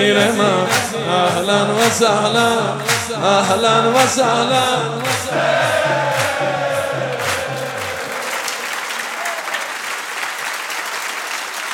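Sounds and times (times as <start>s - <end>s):
speech: 0.0s - 6.1s
low rhythmic tune: 0.0s - 8.9s
audience applauding at a religious gathering: 5.0s - 11.7s.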